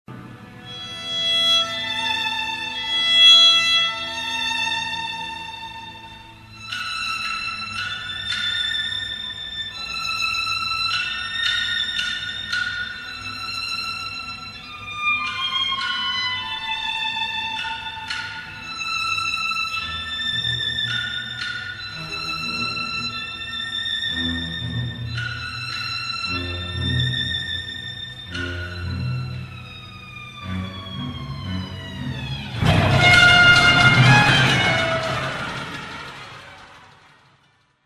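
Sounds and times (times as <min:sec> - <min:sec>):
violin solo: 0:00.1 - 0:36.8.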